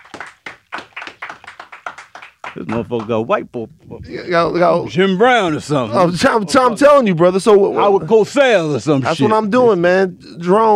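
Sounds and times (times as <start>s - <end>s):
people clapping in the room: 0.0s - 3.3s
speech: 2.6s - 10.7s.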